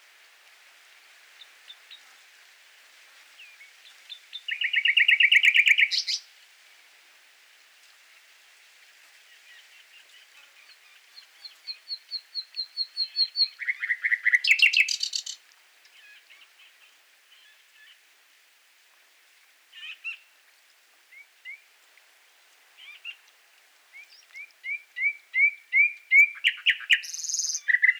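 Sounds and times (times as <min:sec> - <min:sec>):
common nightingale song: 0:01.4 - 0:02.4, 0:03.2 - 0:06.4, 0:09.3 - 0:18.1, 0:19.7 - 0:20.4, 0:21.0 - 0:21.8, 0:22.7 - 0:27.9.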